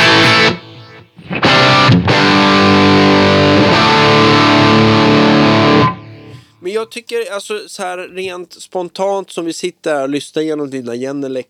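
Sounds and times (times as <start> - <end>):
heavily distorted electric guitar chords: 0.0 - 6.5
speech: 6.7 - 11.4.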